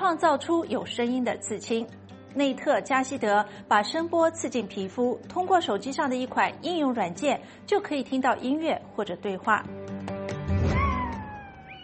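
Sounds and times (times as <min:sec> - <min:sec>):
speech: 0:00.0 - 0:09.9
pet dog howling like a wolf: 0:10.7 - 0:11.8.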